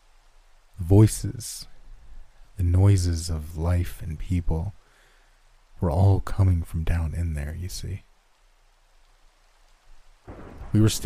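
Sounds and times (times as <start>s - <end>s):
rain falling: 0.0s - 11.0s
speech: 0.9s - 1.7s, 2.6s - 4.8s, 5.8s - 8.1s, 10.3s - 11.0s.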